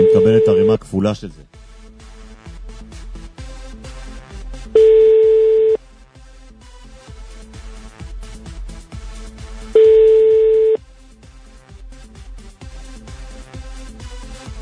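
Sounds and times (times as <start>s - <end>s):
telephone ringing tone while calling someone: 0.0s - 0.8s, 4.8s - 5.8s, 9.8s - 10.8s
speech: 0.0s - 1.7s.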